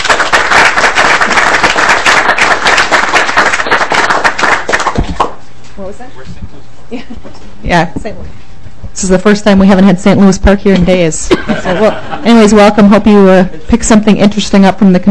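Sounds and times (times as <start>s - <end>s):
round of applause for visiting students: 0.0s - 5.4s
speech: 7.7s - 8.4s, 9.0s - 15.1s
laughter: 11.3s - 12.4s.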